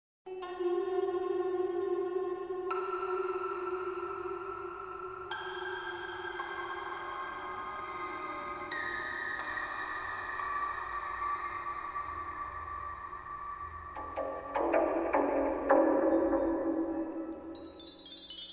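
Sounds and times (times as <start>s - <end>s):
astral world ambient soundscape: 0.4s - 18.0s.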